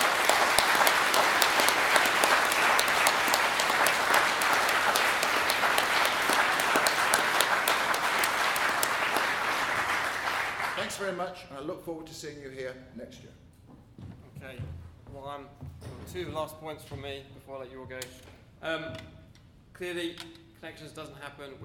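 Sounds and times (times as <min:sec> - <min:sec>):
audience applause: 0:00.0 - 0:11.2
speech: 0:11.2 - 0:13.5, 0:14.4 - 0:19.1, 0:19.8 - 0:21.6.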